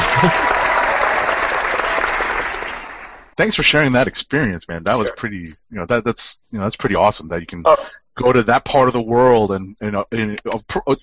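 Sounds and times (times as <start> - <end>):
applause sound effect: 0.0 - 3.9
speech: 0.2 - 0.5, 3.4 - 11.0.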